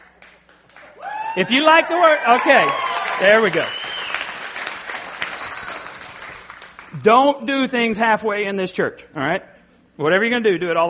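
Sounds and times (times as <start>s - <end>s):
church audience applauding: 0.0s - 7.0s
speech: 1.4s - 3.8s, 7.0s - 10.8s.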